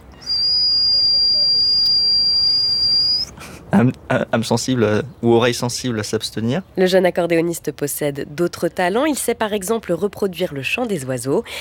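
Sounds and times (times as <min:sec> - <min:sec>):
person imitating a pressure cooker whistle with their mouth: 0:00.2 - 0:03.3
speech: 0:03.8 - 0:11.5.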